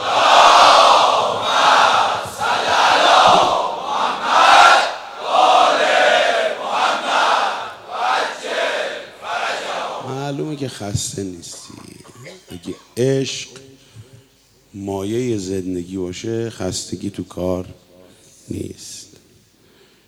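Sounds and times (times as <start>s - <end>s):
gathering chanting salawat in unison: 0.0s - 10.4s
speech: 10.7s - 12.0s, 12.6s - 13.6s, 14.8s - 17.8s, 18.5s - 19.0s.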